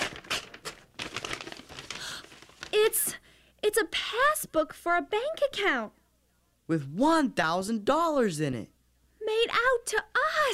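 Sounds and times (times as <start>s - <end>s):
envelope being torn open: 0.0s - 3.0s
speech: 3.7s - 6.0s, 6.7s - 10.5s.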